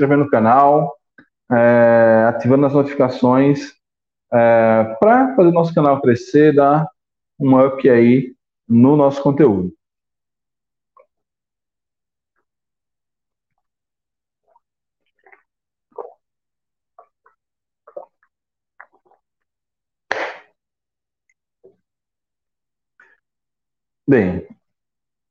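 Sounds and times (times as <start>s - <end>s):
speech: 0.0s - 9.8s, 24.1s - 24.6s
person drinking water: 14.4s - 16.3s, 16.9s - 19.5s.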